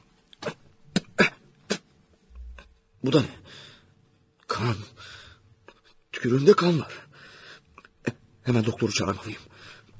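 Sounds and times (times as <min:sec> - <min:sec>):
harsh coughing fit in a radio drama: 0:00.4 - 0:01.8
speech: 0:03.0 - 0:03.6, 0:04.6 - 0:05.2, 0:06.2 - 0:07.0, 0:08.5 - 0:09.5.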